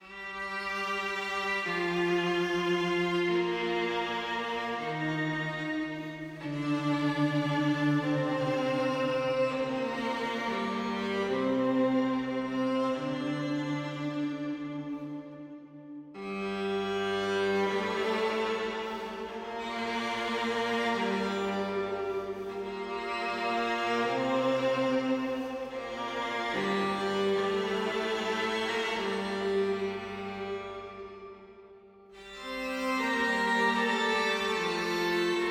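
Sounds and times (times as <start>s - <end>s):
violin: 0.0s - 35.5s.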